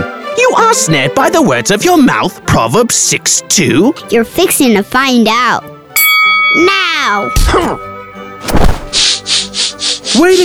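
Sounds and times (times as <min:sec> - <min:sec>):
speech: 0:00.5 - 0:05.8, 0:06.6 - 0:07.9, 0:08.9 - 0:10.4
knockout punch: 0:08.4 - 0:09.1.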